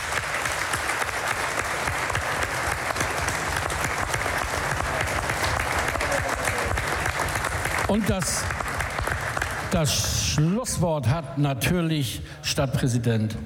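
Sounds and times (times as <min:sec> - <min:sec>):
audience applauding: 0:00.0 - 0:10.8
speech: 0:07.9 - 0:08.6, 0:09.7 - 0:13.4.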